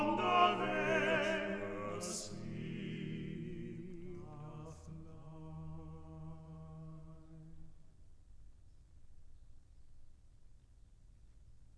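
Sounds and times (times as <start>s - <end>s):
vocal piece: 0.0s - 6.0s.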